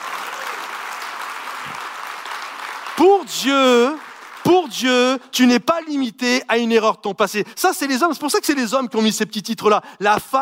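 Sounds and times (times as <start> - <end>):
applause: 0.0 - 5.6
speech: 3.0 - 10.4.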